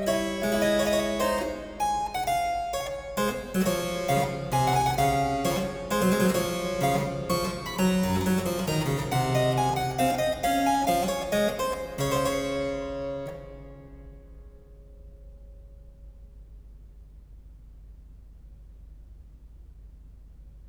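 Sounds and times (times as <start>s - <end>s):
keyboard minuet: 0.0s - 14.0s.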